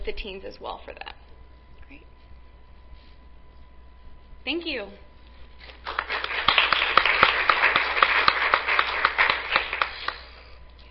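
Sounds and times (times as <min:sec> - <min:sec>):
speech: 0:00.0 - 0:01.2, 0:01.9 - 0:02.1, 0:04.4 - 0:05.1
audience applause for a panel: 0:05.8 - 0:10.4.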